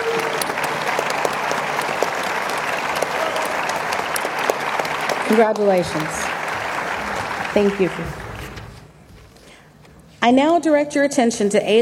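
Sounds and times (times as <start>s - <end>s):
audience applause for elected board members: 0.0s - 8.7s
speech: 5.3s - 6.3s, 7.6s - 8.2s, 10.2s - 11.7s.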